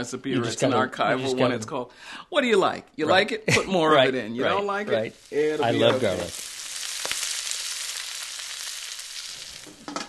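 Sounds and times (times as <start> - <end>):
speech: 0.0 - 6.5
food sizzling as it cooks over a fire: 3.9 - 10.0.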